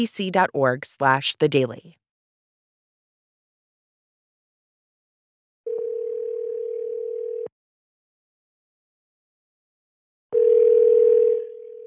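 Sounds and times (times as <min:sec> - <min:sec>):
speech: 0:00.0 - 0:02.0
telephone ringing tone on an outgoing call: 0:05.7 - 0:07.5, 0:10.3 - 0:11.8.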